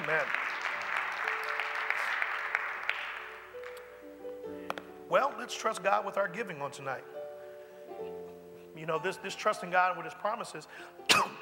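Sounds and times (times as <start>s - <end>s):
audience clapping: 0.0s - 4.0s
speech: 5.1s - 7.2s, 8.8s - 11.3s.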